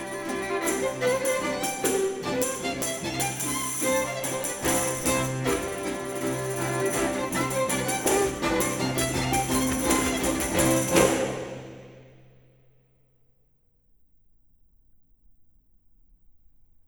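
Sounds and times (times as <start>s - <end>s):
tambourin dance music: 0.0s - 11.9s.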